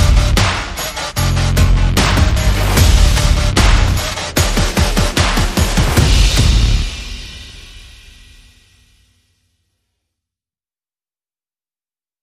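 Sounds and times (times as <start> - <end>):
drum and bass mix: 0.0 - 7.7.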